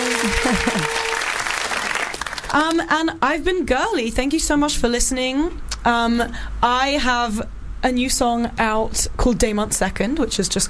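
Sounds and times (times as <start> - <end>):
audience applause: 0.0 - 2.7
speech: 2.5 - 10.6.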